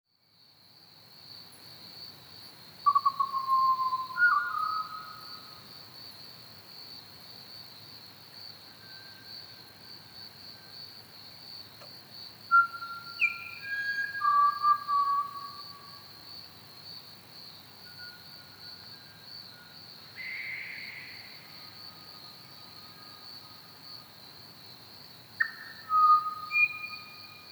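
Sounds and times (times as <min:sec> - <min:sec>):
pied butcherbird song at Ormiston Gorge: 0:02.9 - 0:05.4, 0:12.5 - 0:15.7, 0:25.4 - 0:27.5.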